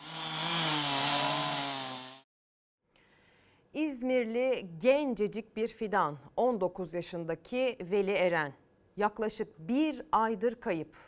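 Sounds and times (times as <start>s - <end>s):
chainsaw cutting up a fallen tree: 0.0s - 2.3s
speech: 3.8s - 11.0s.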